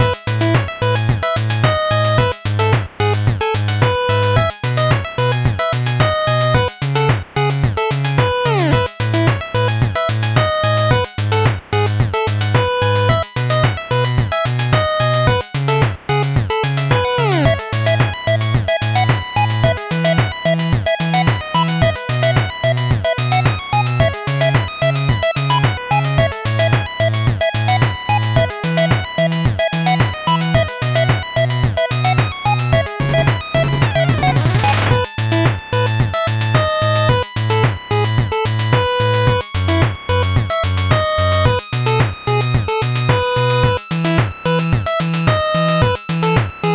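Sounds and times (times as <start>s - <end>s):
slow 8-bit background music: 0.0s - 46.7s.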